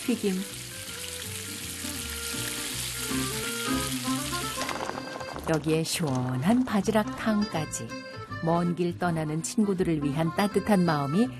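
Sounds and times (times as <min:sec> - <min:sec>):
speech: 0:00.0 - 0:00.7, 0:05.5 - 0:11.3
battered tangerines deep-frying in oil: 0:00.0 - 0:05.4.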